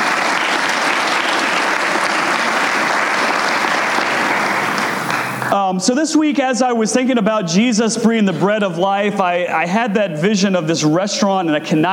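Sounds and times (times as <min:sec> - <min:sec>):
audience round of applause: 0:00.0 - 0:05.6
speech: 0:05.7 - 0:11.9.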